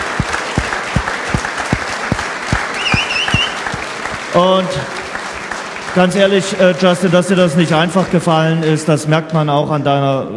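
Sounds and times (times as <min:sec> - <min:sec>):
high whistle or cheer: 0:00.0 - 0:03.8
regular low thumps: 0:00.0 - 0:03.8
audience applause: 0:00.0 - 0:08.1
speech: 0:04.4 - 0:05.0, 0:06.0 - 0:10.3.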